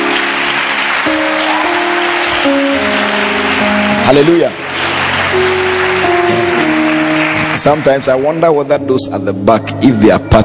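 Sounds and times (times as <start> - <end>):
audience clapping hands: 0.0 - 9.0
speech: 4.1 - 4.7, 5.3 - 5.6, 7.6 - 10.4.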